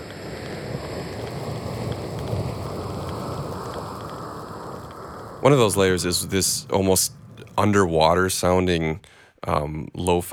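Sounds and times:
layered vinyl static samples: 0.0 - 10.3
speech: 5.4 - 10.3.

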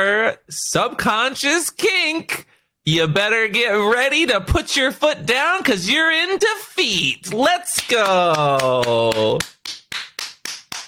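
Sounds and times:
speech: 0.0 - 9.5
hand clapping: 7.3 - 10.8.

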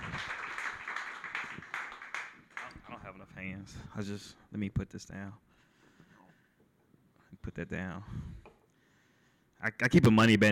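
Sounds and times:
audience applause for a comedian: 0.0 - 3.0
speech: 3.7 - 5.5, 7.4 - 8.3, 9.6 - 10.5.

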